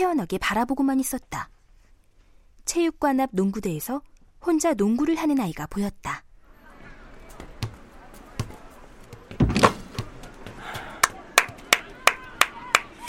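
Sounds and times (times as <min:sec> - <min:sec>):
speech: 0:00.0 - 0:01.6, 0:02.7 - 0:06.2
hand clapping: 0:10.4 - 0:13.0.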